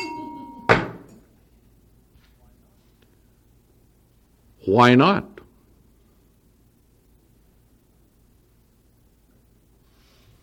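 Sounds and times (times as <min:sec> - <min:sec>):
bell being rung: 0:00.0 - 0:00.9
speech: 0:04.7 - 0:05.3.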